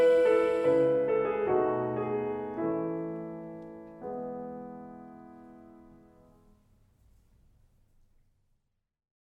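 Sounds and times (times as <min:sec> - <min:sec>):
person singing: 0:00.0 - 0:01.1
piano: 0:00.0 - 0:08.0.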